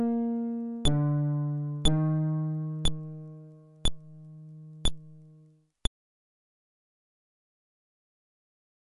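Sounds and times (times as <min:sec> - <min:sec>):
fretless instrument: 0:00.0 - 0:05.6.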